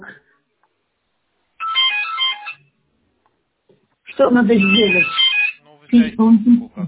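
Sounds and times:
telephone beeping with an incoming call: 1.6s - 2.6s, 4.4s - 5.6s
speech: 4.2s - 5.2s, 5.9s - 6.8s.

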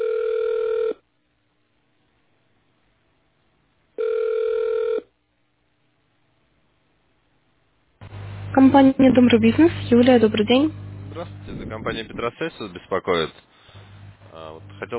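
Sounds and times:
telephone ringback tone while on hold: 0.0s - 1.0s, 4.0s - 5.1s
speech: 8.6s - 13.5s, 14.3s - 14.9s.

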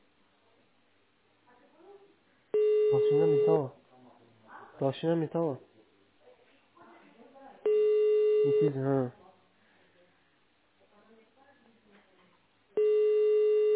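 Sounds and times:
ringback tone of an unanswered telephone call over a narrow phone line: 2.6s - 3.7s, 7.7s - 8.8s, 12.8s - 13.7s
speech: 3.1s - 3.8s, 4.8s - 5.7s, 8.4s - 9.2s.

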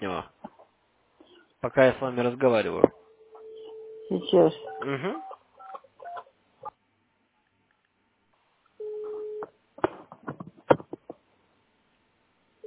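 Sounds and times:
speech: 1.6s - 3.0s, 4.1s - 5.3s
dial tone hum: 3.1s - 5.3s.

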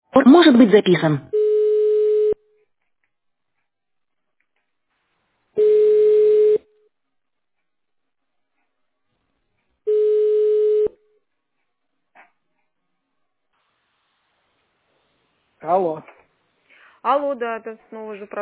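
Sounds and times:
speech: 0.2s - 1.3s, 17.2s - 18.4s
telephone busy tone after a dropped call: 1.4s - 2.4s, 5.6s - 6.6s, 9.9s - 10.9s.

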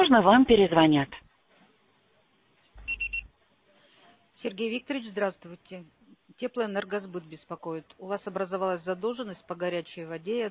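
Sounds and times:
speech: 0.0s - 1.2s, 4.4s - 10.4s
voicemail answering machine beep: 2.8s - 3.3s.

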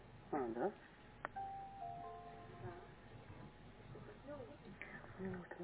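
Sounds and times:
speech: 0.4s - 1.0s, 5.2s - 5.6s
computer beeping a melodic chime: 1.4s - 2.8s.

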